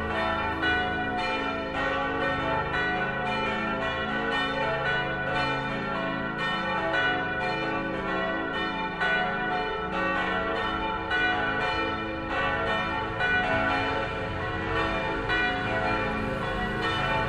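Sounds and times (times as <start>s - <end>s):
church bells ringing in Lensahn: 0.0s - 17.2s.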